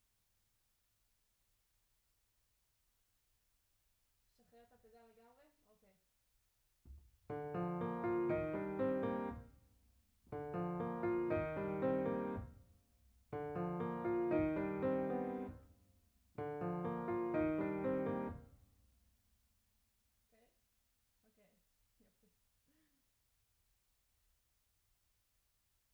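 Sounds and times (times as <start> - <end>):
piano note B: 7.3 - 9.4, 10.3 - 12.5, 13.4 - 15.6, 16.4 - 18.4.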